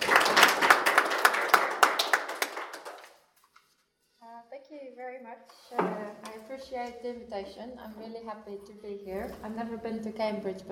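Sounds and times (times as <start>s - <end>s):
group applauding: 0.0s - 3.4s
speech: 6.7s - 10.7s.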